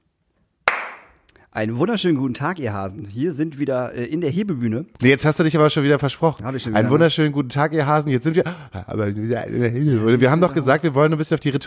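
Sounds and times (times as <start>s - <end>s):
hand clap: 0.7s - 1.2s
speech: 1.6s - 11.6s.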